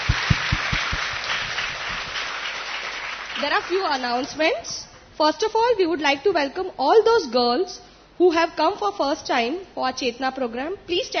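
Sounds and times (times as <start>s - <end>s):
heavy low thumps: 0.0s - 2.1s
audience clapping: 0.0s - 4.5s
speech: 3.4s - 11.1s.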